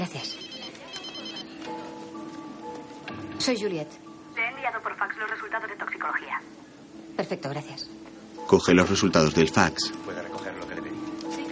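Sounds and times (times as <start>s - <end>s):
telephone ringing for an incoming call in a hospital: 0.0s - 2.2s
speech: 3.4s - 4.1s, 4.7s - 6.6s, 7.2s - 10.6s.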